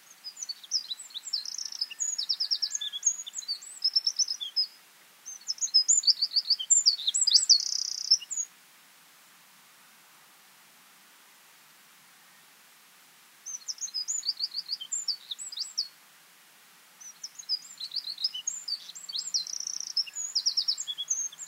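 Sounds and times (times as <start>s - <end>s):
Eurasian wren Troglodytes troglodytes singing: 0.0s - 8.5s, 13.5s - 15.9s, 17.0s - 21.4s.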